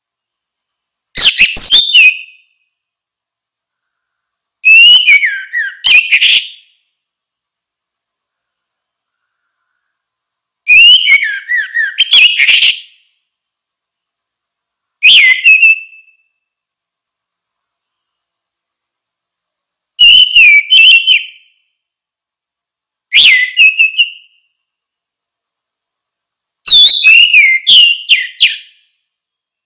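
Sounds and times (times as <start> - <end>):
orange-headed thrush whistled song: 1.1 - 2.8, 3.8 - 6.8, 10.6 - 13.2, 15.0 - 16.6, 20.0 - 21.8, 23.1 - 24.8, 26.6 - 29.6.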